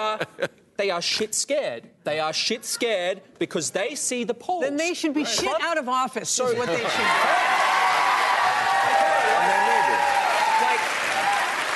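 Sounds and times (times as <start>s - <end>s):
speech: 0.0s - 7.8s
audience applause and cheering: 6.9s - 11.7s.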